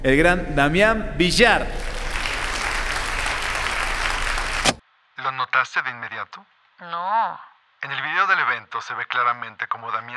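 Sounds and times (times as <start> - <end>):
speech: 0.0 - 1.9, 5.6 - 10.1
audience applause: 1.7 - 4.8.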